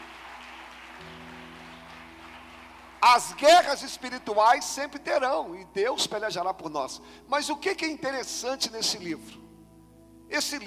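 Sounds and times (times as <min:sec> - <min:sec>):
audience applause: 0:00.0 - 0:03.8
speech: 0:03.1 - 0:09.4, 0:10.3 - 0:10.6.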